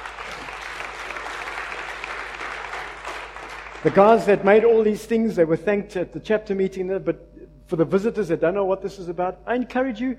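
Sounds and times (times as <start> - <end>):
crowd applauding: 0.0 - 4.6
speech: 3.8 - 10.1.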